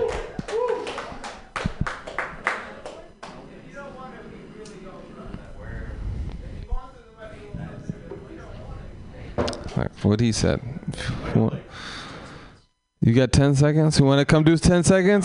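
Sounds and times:
small comedy-show audience clapping: 0:00.0 - 0:03.4
speech: 0:10.0 - 0:10.7, 0:11.3 - 0:11.5, 0:13.1 - 0:15.2.

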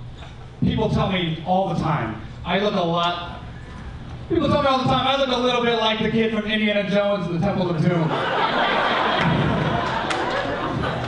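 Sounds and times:
speech: 0:00.6 - 0:03.4, 0:04.3 - 0:08.9
laughter: 0:08.0 - 0:11.0
audience applause: 0:08.7 - 0:11.0.

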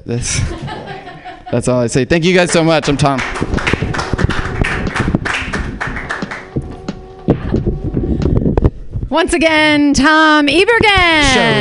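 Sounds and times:
speech: 0:00.1 - 0:00.8, 0:01.5 - 0:03.7, 0:09.2 - 0:11.5
laughter: 0:00.3 - 0:01.9
people clapping: 0:02.2 - 0:07.8.

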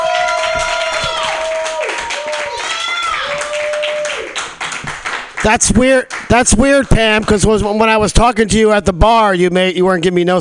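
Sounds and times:
audience applause at a comedy club: 0:00.0 - 0:07.3
speech: 0:05.4 - 0:10.3.

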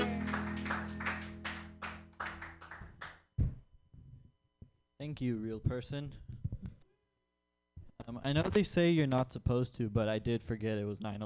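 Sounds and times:
audience applause: 0:00.0 - 0:03.2
speech: 0:05.0 - 0:06.3, 0:08.1 - 0:11.2.

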